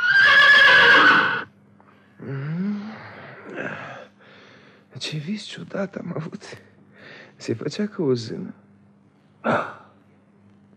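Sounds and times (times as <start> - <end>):
horse neighing loudly: 0.0 - 1.5
speech: 5.0 - 6.7, 7.4 - 8.6, 9.4 - 9.8.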